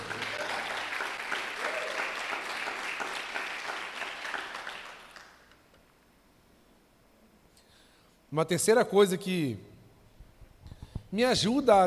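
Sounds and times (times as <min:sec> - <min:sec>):
crowd clapping: 0:00.0 - 0:05.5
speech: 0:08.4 - 0:09.7, 0:11.1 - 0:11.8.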